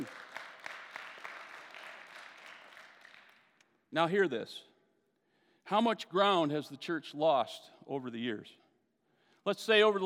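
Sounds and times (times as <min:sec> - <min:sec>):
audience clapping: 0:00.0 - 0:03.6
speech: 0:03.9 - 0:04.7, 0:05.7 - 0:08.6, 0:09.4 - 0:10.0.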